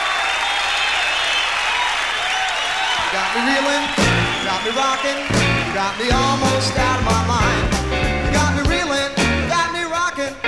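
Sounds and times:
audience applause welcoming a guitarist on stage at a New York concert: 0.0s - 7.5s
crowd noise at a New York concert: 0.0s - 10.4s
speech: 3.1s - 7.7s.

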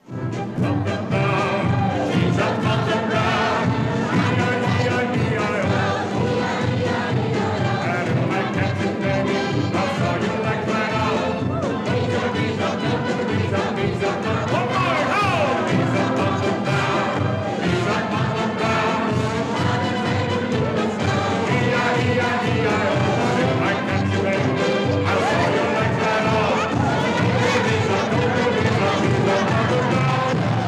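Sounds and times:
musical accompaniment: 0.0s - 30.6s
audience singing an old music-hall number at the old Metropolitan on Edgware Road: 0.3s - 30.6s.

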